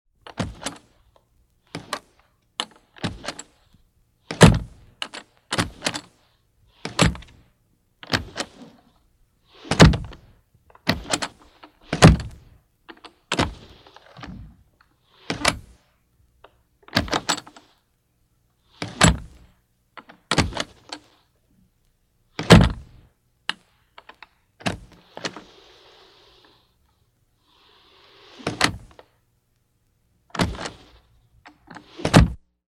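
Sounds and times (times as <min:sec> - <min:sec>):
household cabinet latch opening and closing: 0:00.3 - 0:01.0, 0:01.7 - 0:03.6, 0:04.3 - 0:06.2, 0:06.8 - 0:07.4, 0:08.0 - 0:08.7, 0:09.7 - 0:14.6, 0:15.2 - 0:15.8, 0:16.8 - 0:17.7, 0:18.8 - 0:21.1, 0:22.4 - 0:23.0, 0:24.0 - 0:25.6, 0:28.3 - 0:29.1, 0:30.3 - 0:32.4.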